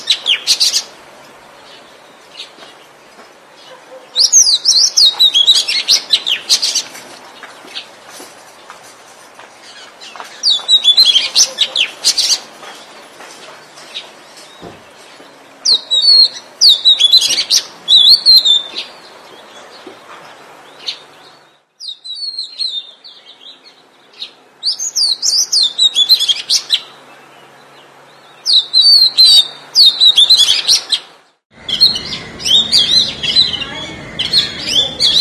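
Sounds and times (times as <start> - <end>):
Oriental magpie-robin singing whistled figures: 3.6 - 7.0, 9.6 - 12.9, 13.8 - 19.9, 20.7 - 27.0, 28.2 - 31.0, 31.6 - 35.1.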